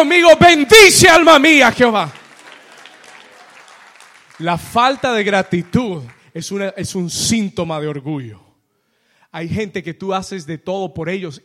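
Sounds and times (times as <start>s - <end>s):
speech: 0.0s - 2.2s, 4.4s - 8.4s, 9.3s - 11.4s
audience applause: 1.7s - 6.3s.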